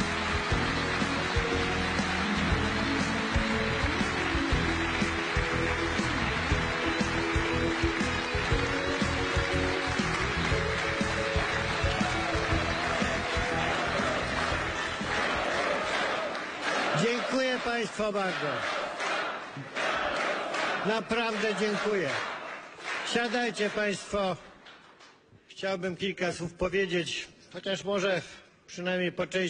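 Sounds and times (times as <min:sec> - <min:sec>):
sustained tonal music: 0:00.0 - 0:15.8
crowd applauding and cheering loudly: 0:00.0 - 0:24.8
speech: 0:18.0 - 0:18.8, 0:20.8 - 0:22.3, 0:23.1 - 0:24.5, 0:25.6 - 0:29.4.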